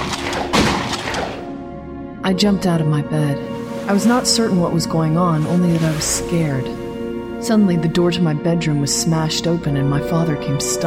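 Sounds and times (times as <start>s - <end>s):
gunshots: 0.0s - 1.5s
speech: 2.3s - 6.8s, 7.4s - 10.8s.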